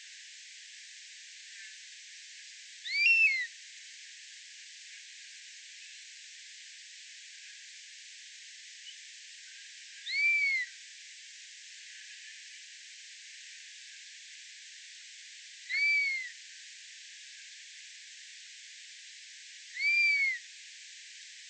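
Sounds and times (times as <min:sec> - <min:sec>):
buzzard bird songs: 0:02.9 - 0:03.5, 0:10.1 - 0:10.7, 0:15.7 - 0:16.3, 0:19.8 - 0:20.4.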